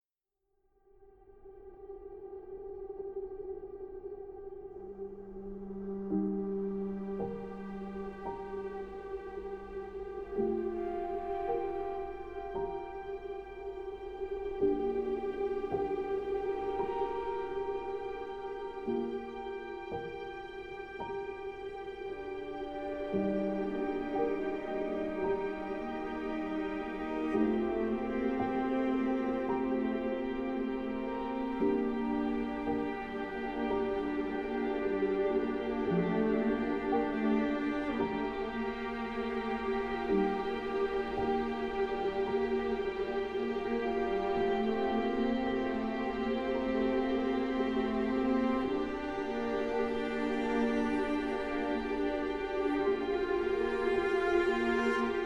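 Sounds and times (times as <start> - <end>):
orchestral music: 5.3 - 55.2.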